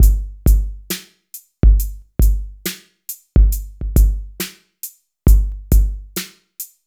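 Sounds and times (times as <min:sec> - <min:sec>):
FX kit beats: 0:00.0 - 0:04.6, 0:05.3 - 0:06.4.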